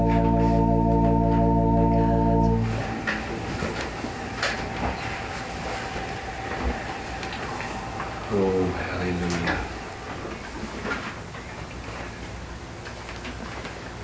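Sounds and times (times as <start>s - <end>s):
organ prelude for opening worship: 0.0s - 11.0s.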